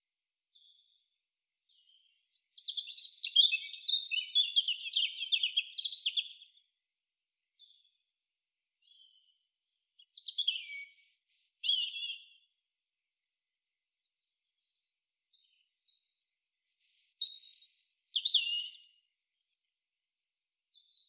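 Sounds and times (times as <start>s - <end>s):
European robin song: 0.0s - 6.5s, 10.0s - 12.5s, 14.3s - 19.5s.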